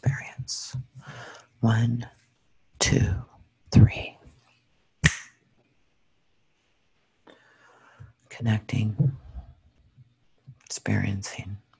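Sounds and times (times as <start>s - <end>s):
speech: 1.6s - 2.2s, 2.9s - 4.2s, 8.4s - 9.2s, 10.7s - 11.6s
finger snap: 5.0s - 5.4s.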